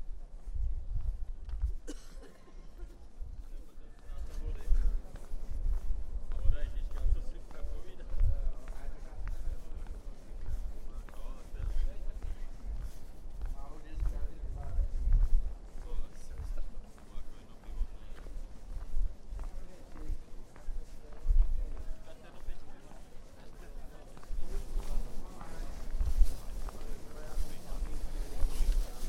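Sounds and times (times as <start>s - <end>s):
crowd chatter between Prague Castle and Charles Bridge: 0.0s - 29.0s
low thumps and footsteps: 0.0s - 29.0s.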